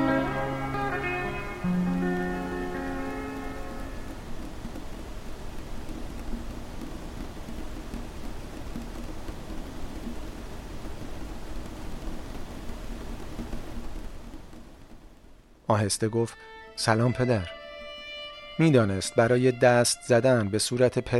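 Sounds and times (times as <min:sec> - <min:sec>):
steady rain: 0:00.0 - 0:21.1
speech: 0:15.7 - 0:17.6, 0:18.6 - 0:21.1.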